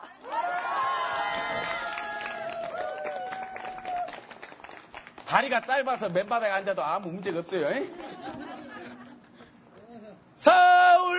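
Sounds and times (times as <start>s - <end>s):
people cheering and whooping: 0.2s - 4.3s
crowd applauding: 0.2s - 6.6s
speech: 5.3s - 8.1s
laughter: 7.7s - 10.2s.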